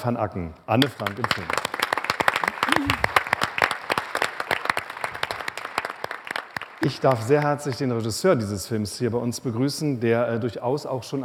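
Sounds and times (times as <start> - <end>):
speech: 0.0 - 1.6, 6.8 - 11.2
studio audience applause: 0.8 - 8.0.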